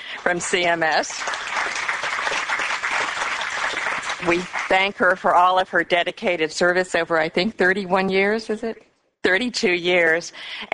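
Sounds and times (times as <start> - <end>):
audience applause at a healthcare agency event: 0.1 - 5.0
speech: 0.2 - 1.5, 4.2 - 10.7.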